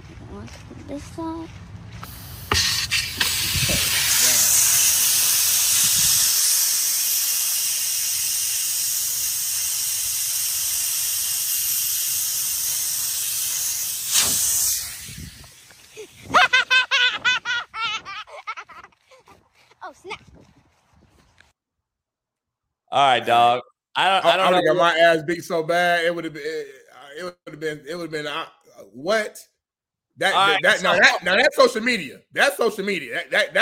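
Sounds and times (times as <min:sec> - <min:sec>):
speech: 0:00.4 - 0:02.1, 0:23.0 - 0:29.5, 0:30.2 - 0:33.5
air hissing from a stabbed tire: 0:02.0 - 0:16.4
laughter: 0:16.0 - 0:19.2, 0:30.3 - 0:31.5.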